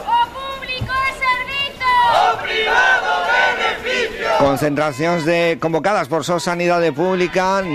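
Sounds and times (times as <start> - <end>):
protest crowd chanting slogans at a public-health rally outside a hospital in Pontevedra: 0.0 - 5.6, 6.2 - 7.7
speech: 4.4 - 7.7.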